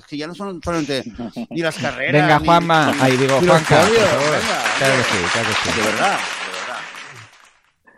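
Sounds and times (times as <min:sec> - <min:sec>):
speech: 0:00.1 - 0:06.4
laughter: 0:00.7 - 0:07.3
applause sound effect: 0:02.2 - 0:07.8.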